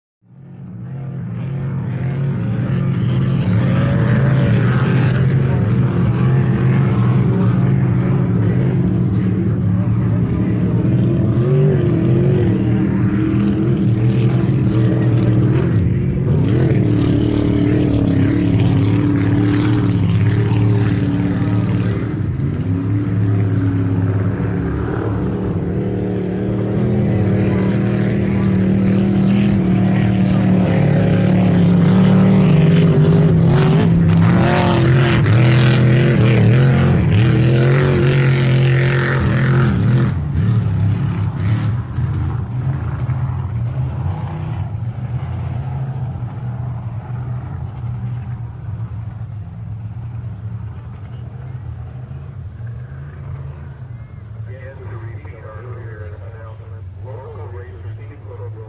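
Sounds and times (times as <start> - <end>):
offshore power boat race ambience: 0.3 - 58.6.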